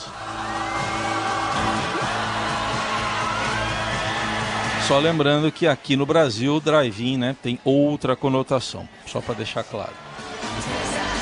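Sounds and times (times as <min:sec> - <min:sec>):
rock song with shouted whooping vocals playing in background: 0:00.0 - 0:04.9, 0:08.9 - 0:11.2
speech: 0:04.9 - 0:10.9.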